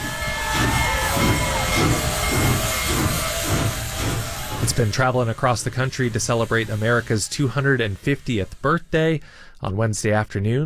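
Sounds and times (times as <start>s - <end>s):
steam locomotive ringing its bell: 0.0s - 8.3s
hundreds of spectators cheering: 0.0s - 8.9s
steam locomotive bellowing black steam: 0.0s - 10.5s
speech: 4.8s - 10.6s.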